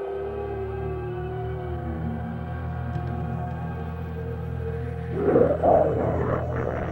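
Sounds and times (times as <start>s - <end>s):
steady droning hum: 0.1s - 6.9s
low rumbling creature growl: 5.0s - 6.9s.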